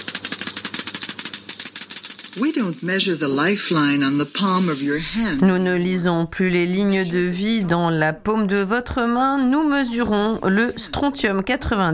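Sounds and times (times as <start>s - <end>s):
Geiger counter clicking: 0.0s - 3.8s
speech: 2.3s - 11.9s.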